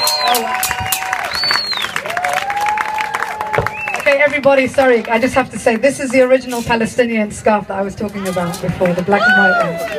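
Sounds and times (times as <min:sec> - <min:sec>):
audience applause: 0:00.0 - 0:04.2
speech: 0:00.3 - 0:00.8, 0:04.2 - 0:09.9.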